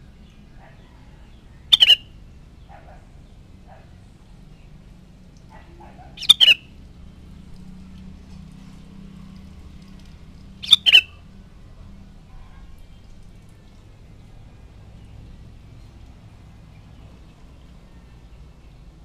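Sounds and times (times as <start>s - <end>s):
sooty-headed bulbul chattering: 1.6s - 2.1s, 5.5s - 6.7s, 10.6s - 11.2s.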